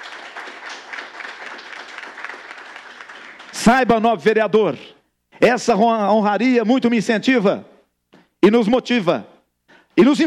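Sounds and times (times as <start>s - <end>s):
audience applause: 0.0s - 4.0s
speech: 3.6s - 7.7s, 8.4s - 9.3s, 10.0s - 10.2s.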